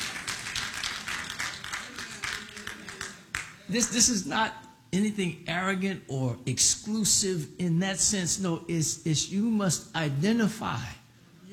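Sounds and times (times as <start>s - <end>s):
audience clapping: 0.0s - 3.7s
speech: 3.7s - 11.0s.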